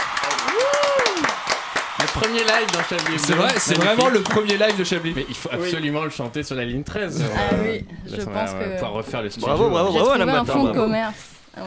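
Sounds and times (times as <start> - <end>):
person cheering: 0.0 - 3.9
audience clapping: 0.0 - 6.0
speech: 2.2 - 11.6.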